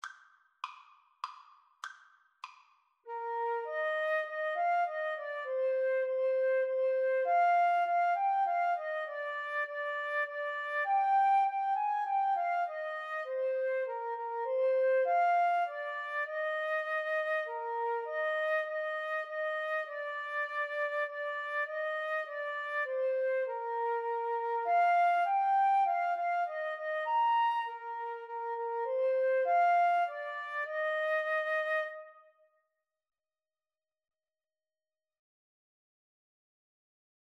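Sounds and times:
flute: 3.1s - 32.5s.

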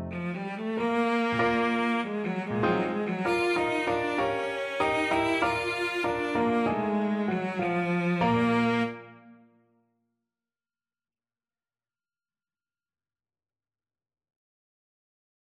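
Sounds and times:
violoncello: 0.1s - 9.4s.

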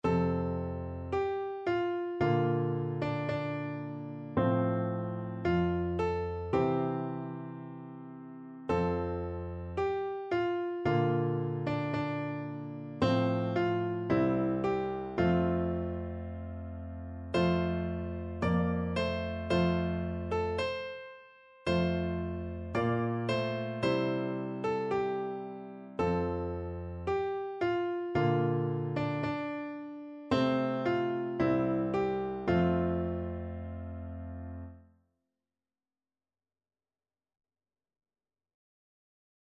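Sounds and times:
hymn piano duet: 0.0s - 34.8s.

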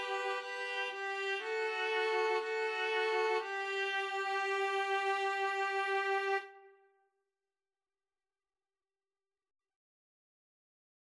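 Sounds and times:
string trio playing: 0.0s - 6.5s.

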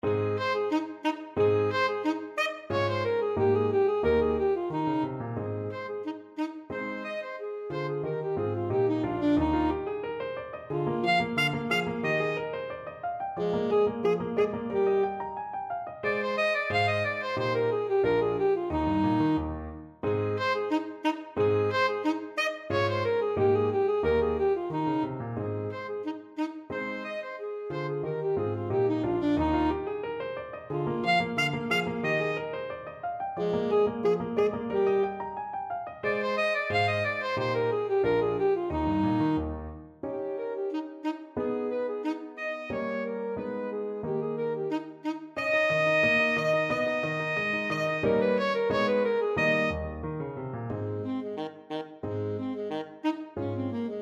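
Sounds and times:
alto saxophone playing a classical sonatina: 0.0s - 54.0s.

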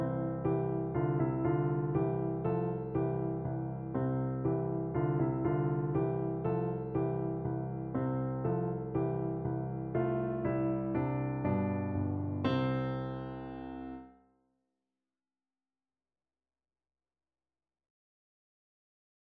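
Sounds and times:
piano duet: 0.0s - 14.1s.

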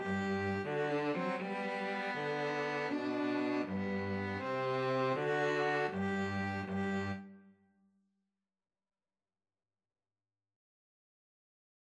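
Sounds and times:
two violins: 0.0s - 7.4s
cello: 0.0s - 7.5s.

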